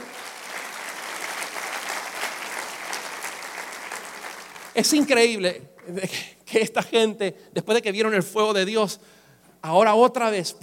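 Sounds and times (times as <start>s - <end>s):
crowd applauding: 0.0s - 5.3s
speech: 4.8s - 10.6s.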